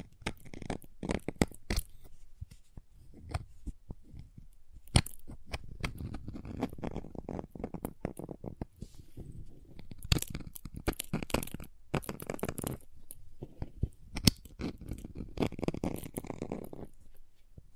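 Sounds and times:
crayons tapped carved and cut with clicks and snaps: 0:00.0 - 0:02.1, 0:04.8 - 0:08.7, 0:09.8 - 0:16.9.

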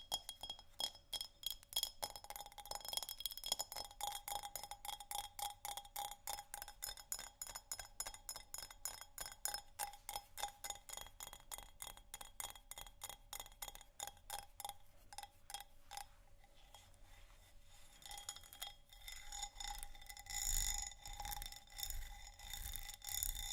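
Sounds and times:
textured glass scratched and tapped: 0:00.0 - 0:17.3, 0:17.9 - 0:23.5.

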